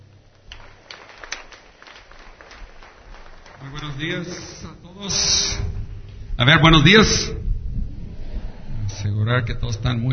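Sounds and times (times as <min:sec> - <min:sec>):
audience applause welcoming a speaker: 0:00.0 - 0:04.7
speech: 0:03.6 - 0:05.7, 0:06.4 - 0:07.4, 0:09.3 - 0:10.1.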